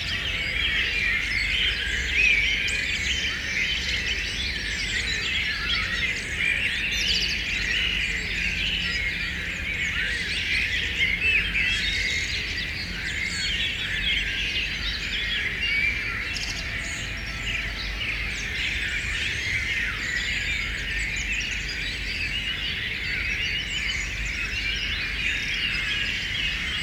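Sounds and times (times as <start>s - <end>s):
birds singing dawn chorus: 0.0s - 26.8s.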